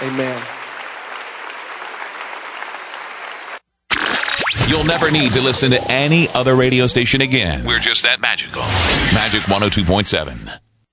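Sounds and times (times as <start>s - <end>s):
church congregation clapping hands in praise: 0.0s - 3.6s
speech: 0.2s - 0.6s, 4.7s - 10.6s.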